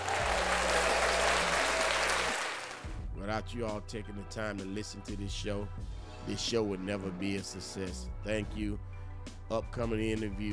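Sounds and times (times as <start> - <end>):
crowd applauding: 0.0 - 3.0
speech: 3.3 - 10.5.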